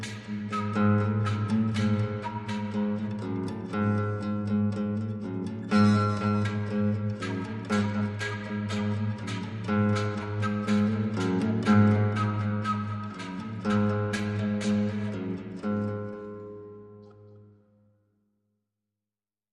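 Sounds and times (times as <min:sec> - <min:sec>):
flute: 0:00.0 - 0:04.5, 0:05.7 - 0:16.4
guitar: 0:00.0 - 0:17.9.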